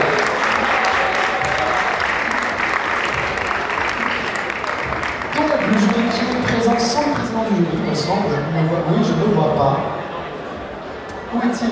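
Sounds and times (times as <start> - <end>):
crowd clapping for the jury: 0.0 - 7.6
murmur of voices: 0.0 - 11.7
speech: 7.5 - 10.0, 11.3 - 11.7.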